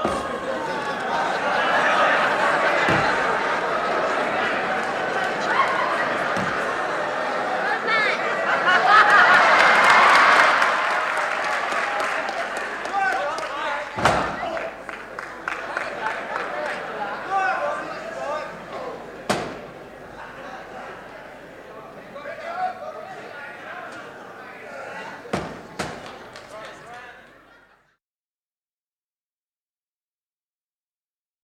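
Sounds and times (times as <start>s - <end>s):
laughter after a throw: 0.2s - 10.1s, 27.2s - 28.0s
applause after a throw: 8.8s - 17.0s, 26.0s - 27.3s.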